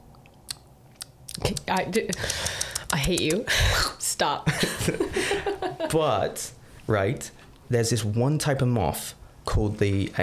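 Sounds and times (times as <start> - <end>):
voice imitating a bat's hunting call aimed at moths: 0.4 - 3.4
speech: 1.4 - 10.2
laughter: 4.5 - 6.1.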